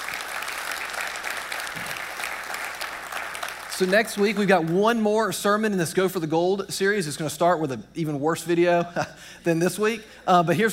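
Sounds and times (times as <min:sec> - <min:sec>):
audience clapping: 0:00.0 - 0:05.0
speech: 0:03.8 - 0:10.7.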